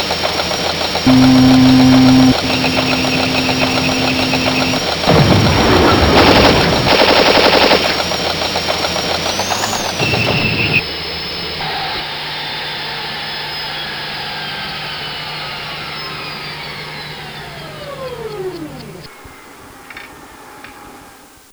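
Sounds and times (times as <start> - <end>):
M1 tank: 0.8 - 11.8.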